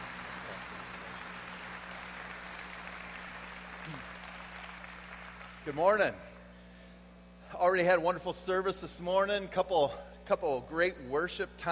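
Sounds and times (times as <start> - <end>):
audience applause welcoming a speaker at a leadership gathering in Tulsa, Oklahoma: 0.0 - 5.8
speech: 5.6 - 6.3, 7.6 - 11.7.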